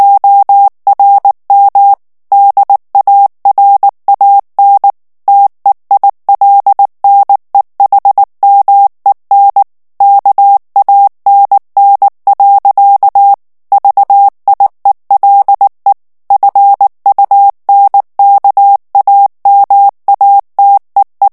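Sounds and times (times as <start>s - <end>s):
German plain-text Morse code at 18 words per minute: 0.0s - 21.3s.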